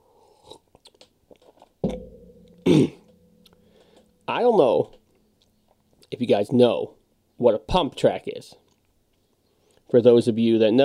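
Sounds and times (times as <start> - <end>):
person sipping coffee: 0.1 - 1.6
speech: 2.7 - 3.0, 4.3 - 5.0, 6.1 - 8.6, 9.9 - 10.8.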